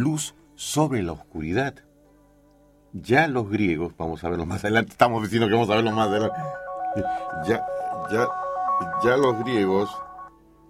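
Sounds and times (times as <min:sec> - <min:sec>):
speech: 0:00.0 - 0:01.9, 0:02.9 - 0:10.0
telephone ringing: 0:05.8 - 0:10.3.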